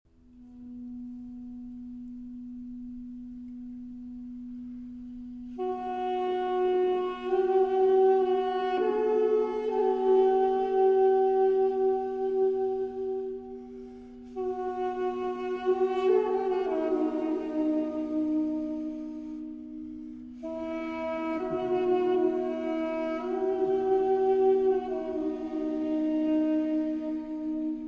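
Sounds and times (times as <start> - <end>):
Armenian duduk duet lament: 5.4 - 27.8.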